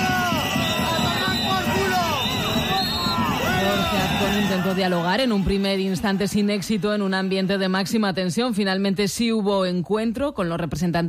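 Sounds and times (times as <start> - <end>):
200 protesters shouting and booing at the president of Aragón in Huesca: 0.0 - 8.1
speech: 4.5 - 11.0.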